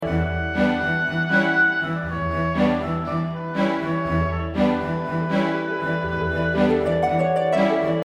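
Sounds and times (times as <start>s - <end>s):
short RPG background music: 0.0s - 8.0s.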